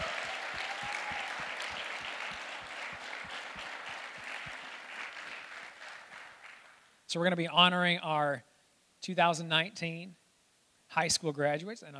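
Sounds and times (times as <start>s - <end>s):
audience clapping for graduates: 0.0s - 6.9s
speech: 7.1s - 10.2s, 10.9s - 11.9s.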